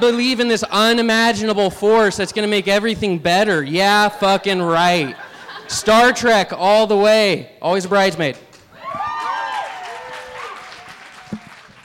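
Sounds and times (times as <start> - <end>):
speech: 0.0 - 8.5
laughter: 1.8 - 3.0, 4.7 - 6.3
audience applause: 8.8 - 11.8.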